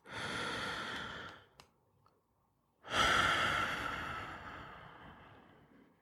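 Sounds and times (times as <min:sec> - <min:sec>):
deep breath: 0:00.0 - 0:01.6, 0:02.8 - 0:06.0.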